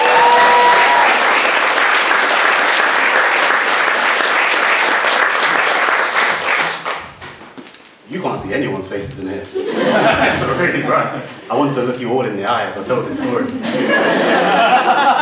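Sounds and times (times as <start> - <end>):
audience applause: 0.0 - 7.3
speech: 8.4 - 15.2
laughter: 9.5 - 11.7, 13.0 - 15.2.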